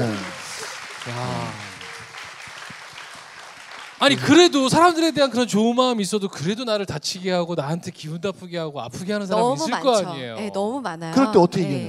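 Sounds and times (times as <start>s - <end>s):
audience applause: 0.0s - 5.5s
speech: 1.0s - 1.6s, 4.0s - 11.8s.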